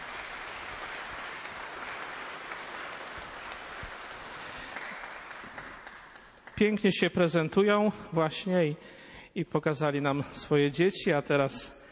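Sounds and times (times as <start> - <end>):
audience applause: 0.0 - 6.7
speech: 6.6 - 11.8.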